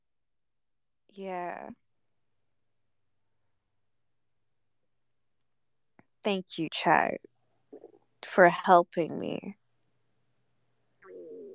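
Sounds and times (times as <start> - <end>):
speech: 1.1 - 1.8, 6.2 - 7.3, 8.2 - 9.6
stomach rumbling: 7.7 - 8.1, 11.0 - 11.5.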